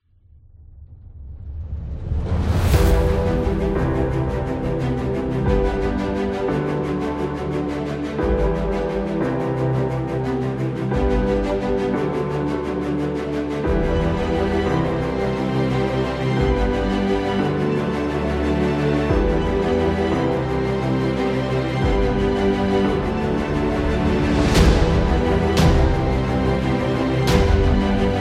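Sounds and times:
epic trailer music: 0.5 - 28.2.

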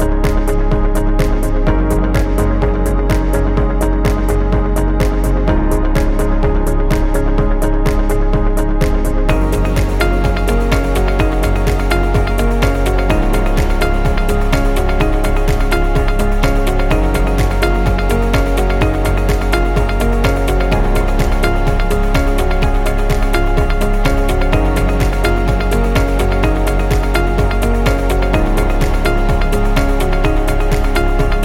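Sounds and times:
upbeat corporate music loop: 0.0 - 31.4.

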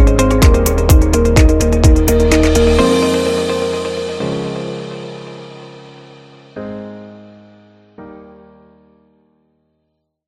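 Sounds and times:
upbeat corporate music loop: 0.0 - 3.2.

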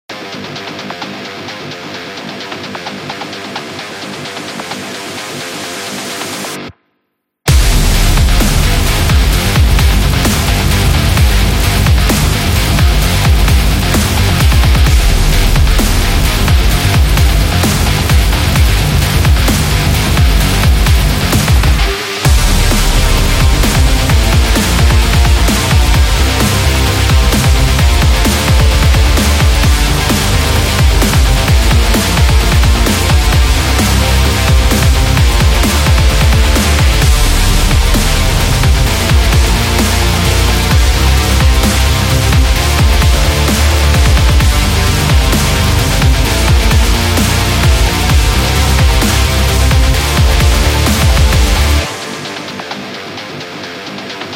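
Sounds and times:
metal music: 0.1 - 6.7, 7.5 - 54.3.

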